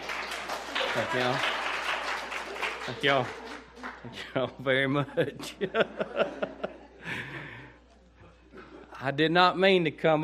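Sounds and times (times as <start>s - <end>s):
audience clapping: 0.0s - 4.6s
laughter: 0.7s - 9.0s
speech: 1.0s - 1.6s, 2.9s - 3.4s, 4.0s - 6.6s, 9.0s - 10.2s.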